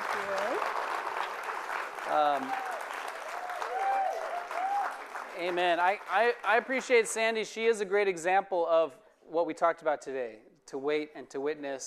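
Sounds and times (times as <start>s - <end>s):
audience applause: 0.0s - 7.0s
speech: 2.1s - 2.7s, 5.4s - 11.8s.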